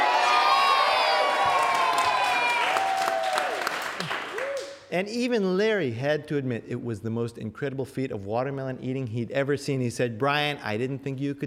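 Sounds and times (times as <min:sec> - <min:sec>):
crowd cheering: 0:00.0 - 0:04.8
speech: 0:04.9 - 0:11.4.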